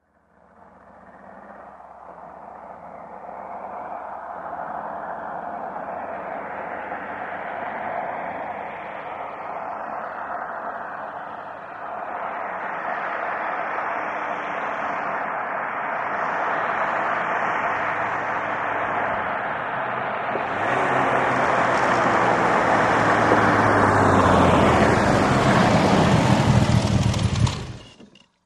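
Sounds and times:
Aston Martin approaching: 0:00.2 - 0:28.4
Aston Martin engine switching off: 0:22.8 - 0:28.4.

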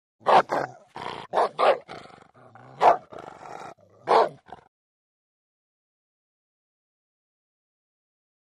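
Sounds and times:
dog barking: 0:00.2 - 0:02.0, 0:02.6 - 0:04.6
dog growling: 0:00.4 - 0:04.7.

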